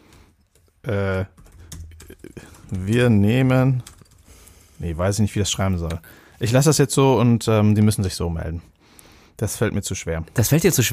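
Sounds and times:
computer keyboard keys clicking as a comment is typed: 0.0 - 4.5
speech: 0.9 - 1.4, 2.7 - 3.9, 4.8 - 8.8, 9.4 - 10.9.

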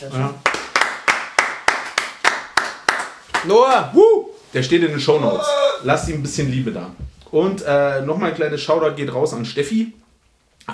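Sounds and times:
speech: 0.0 - 0.5, 3.4 - 10.0
clapping: 0.4 - 3.9.

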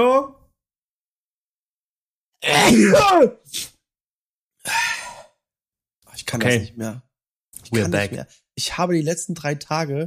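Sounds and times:
speech: 2.4 - 3.7, 6.2 - 10.0
sneeze: 2.4 - 3.8.

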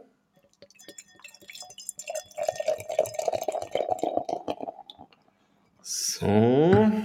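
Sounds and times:
beer being poured into a glass: 0.6 - 5.2
speech: 6.2 - 6.7.

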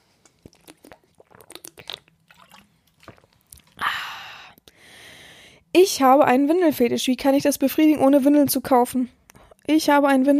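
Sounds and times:
swallowing: 0.0 - 4.0
person sipping a drink: 0.0 - 4.8
speech: 5.8 - 10.3.

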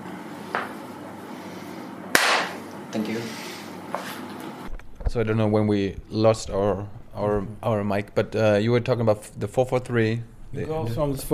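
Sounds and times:
single sharp hand clap: 2.1 - 2.6
speech: 3.0 - 4.0, 5.1 - 11.3.

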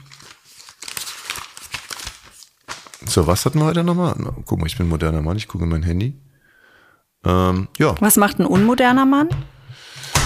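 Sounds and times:
leafing through paper calendar pages: 0.0 - 3.6
speech: 3.1 - 6.3, 7.2 - 10.1.

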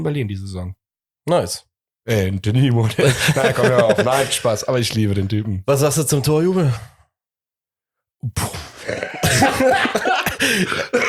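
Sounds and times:
speech: 0.0 - 7.0, 8.2 - 11.0
laughter: 2.8 - 4.7, 9.0 - 11.0
person in a choking coughing fit: 8.6 - 11.0.

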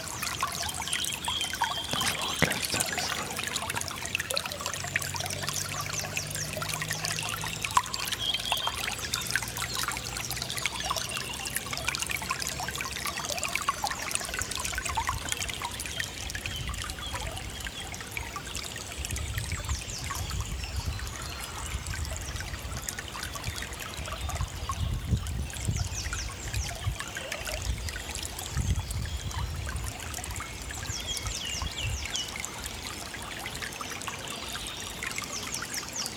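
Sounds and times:
flowing brook water: 0.0 - 36.1.

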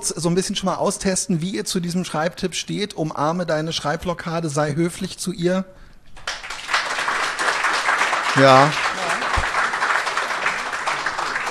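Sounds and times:
speech: 0.1 - 6.4, 8.4 - 8.9
polite audience applause: 6.2 - 11.5.

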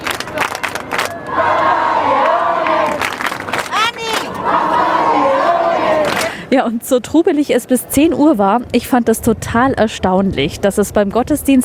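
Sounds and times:
crowd chanting for the pope: 0.0 - 6.4
speech: 6.5 - 11.6.

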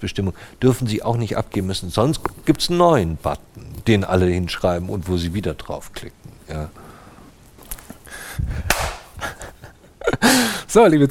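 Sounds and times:
speech: 0.0 - 6.8, 8.4 - 8.9, 10.3 - 11.0
person clapping hands: 8.6 - 9.2.

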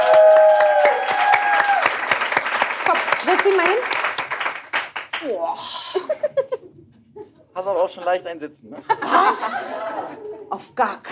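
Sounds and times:
small group applauding: 0.0 - 5.4
speech: 3.3 - 4.0, 5.2 - 6.3, 7.6 - 11.0
laughter: 8.8 - 10.5.

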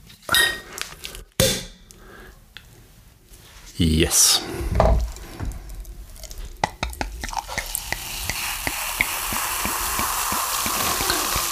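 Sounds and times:
speech: 3.8 - 5.0
sparkling wine bottle being opened: 6.6 - 11.5.

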